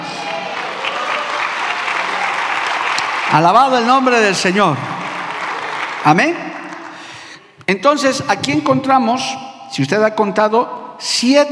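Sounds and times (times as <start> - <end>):
audience applauding: 0.0 - 7.2
speech: 3.3 - 4.9, 6.0 - 6.4, 7.7 - 11.5.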